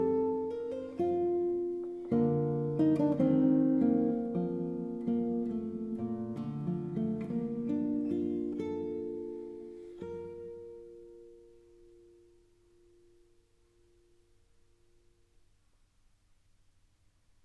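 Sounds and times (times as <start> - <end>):
classical suite movement played on guitar: 0.0 - 15.3.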